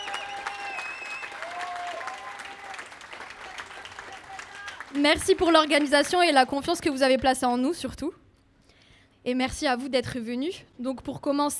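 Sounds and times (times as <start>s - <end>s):
audience applause: 0.0s - 6.6s
speech: 4.9s - 8.2s, 9.2s - 11.5s.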